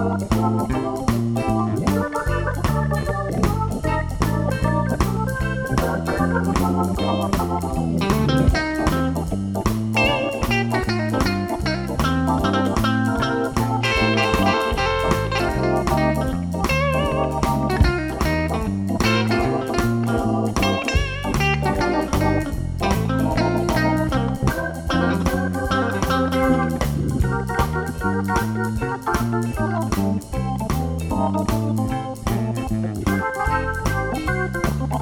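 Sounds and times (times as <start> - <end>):
blues guitar: 0.0 - 35.0.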